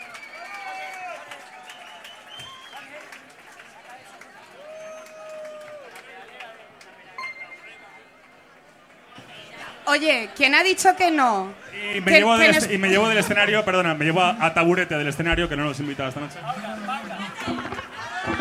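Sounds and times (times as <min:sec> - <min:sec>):
whistles and cheers: 0:00.0 - 0:03.3, 0:04.5 - 0:06.0
crowd applause: 0:00.0 - 0:09.5, 0:16.1 - 0:18.4
speech: 0:09.9 - 0:16.7
laughter: 0:11.7 - 0:14.0, 0:15.6 - 0:18.4.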